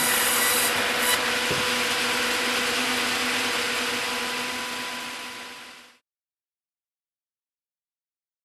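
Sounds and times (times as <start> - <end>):
sawmill machinery: 0.0 - 6.0.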